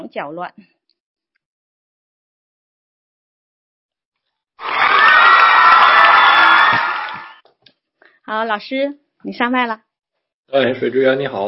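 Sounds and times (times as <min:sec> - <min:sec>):
speech: 0:00.0 - 0:00.8, 0:08.3 - 0:09.9, 0:10.5 - 0:11.4
applause: 0:04.6 - 0:07.4.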